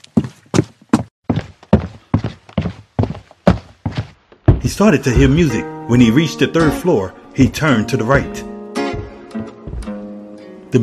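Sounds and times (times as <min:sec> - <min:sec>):
footsteps running up a flight of stairs: 0:00.0 - 0:05.6, 0:08.9 - 0:10.1
speech: 0:04.8 - 0:08.5.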